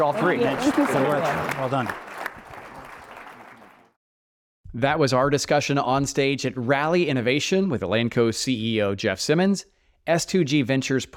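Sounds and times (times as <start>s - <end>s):
speech: 0.0s - 2.1s, 4.7s - 11.1s
round of applause: 0.0s - 4.0s.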